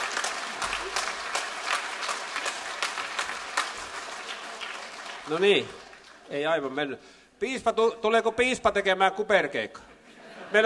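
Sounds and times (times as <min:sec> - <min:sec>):
audience applause: 0:00.0 - 0:06.7
speech: 0:05.3 - 0:09.8
laughter: 0:09.9 - 0:10.6.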